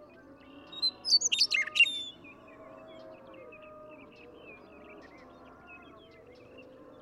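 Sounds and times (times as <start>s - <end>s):
Western meadowlark singing: 0.7s - 2.2s.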